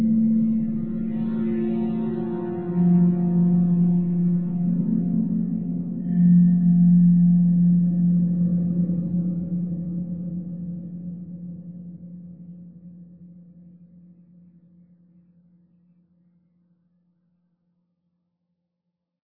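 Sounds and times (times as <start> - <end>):
drone: 0.0 - 9.6.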